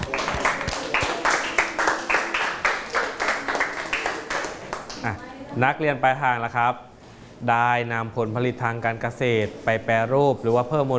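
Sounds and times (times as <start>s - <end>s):
classmates clapping hands: 0.0s - 5.2s
speech: 5.0s - 10.9s.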